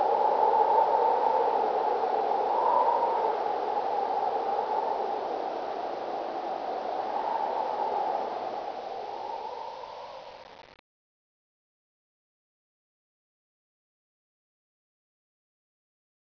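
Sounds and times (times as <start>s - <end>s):
wind: 0.0s - 10.8s.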